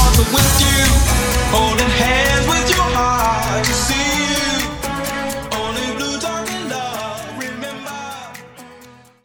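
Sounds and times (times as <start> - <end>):
EDM breaker beat: 0.0 - 7.2.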